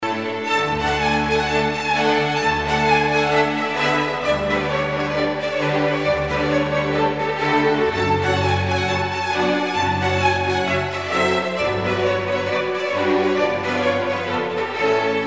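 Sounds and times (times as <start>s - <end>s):
orchestra playing folk dances: 0.0s - 15.2s.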